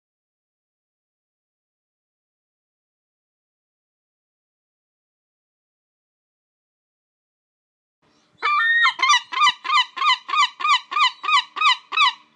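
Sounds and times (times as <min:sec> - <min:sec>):
European herring gull calls: 0:08.4 - 0:12.3.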